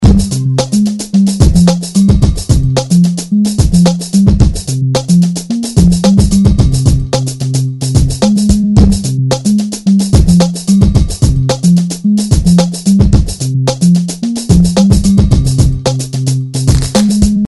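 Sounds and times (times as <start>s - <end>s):
music: 0.0s - 17.4s.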